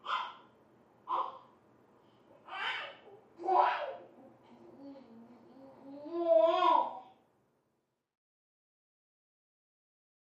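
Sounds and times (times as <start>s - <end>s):
baby talking playfully from next room: 0.0s - 0.4s, 1.1s - 1.5s, 2.4s - 7.2s.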